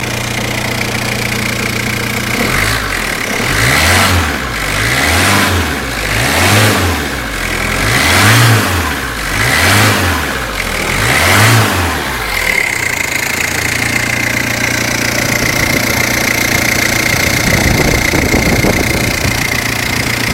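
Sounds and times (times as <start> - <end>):
diesel engine starting: 0.0 - 20.3.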